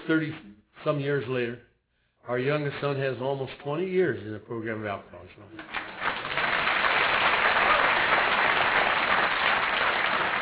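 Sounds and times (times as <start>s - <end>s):
speech: 0.1s - 5.8s
audience applause: 5.6s - 10.4s.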